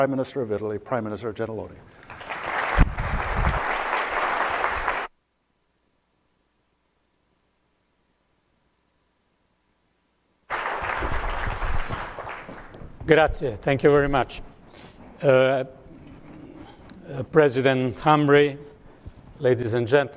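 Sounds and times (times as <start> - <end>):
speech: 0.0 - 2.2, 13.1 - 15.8, 17.1 - 18.7, 19.4 - 20.1
loud dense audience applause: 2.0 - 5.1, 10.5 - 12.8.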